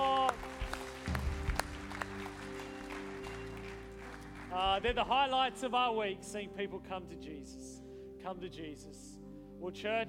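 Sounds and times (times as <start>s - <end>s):
round of applause: 0.0s - 5.2s
speech: 4.6s - 10.0s.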